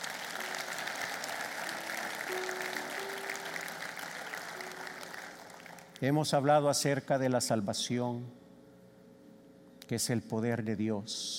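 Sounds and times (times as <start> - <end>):
audience applause: 0.0 - 6.0
speech: 6.0 - 8.4, 9.9 - 11.3.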